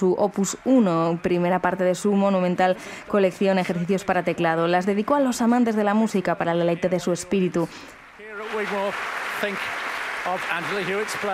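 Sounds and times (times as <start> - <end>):
speech: 0.0 - 11.3
concert audience applauding: 8.2 - 11.3.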